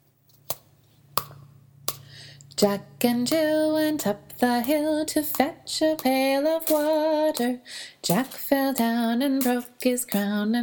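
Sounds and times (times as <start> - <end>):
speech: 2.6 - 10.6
empty toilet paper roll with tissue paper as percussion: 3.2 - 10.6.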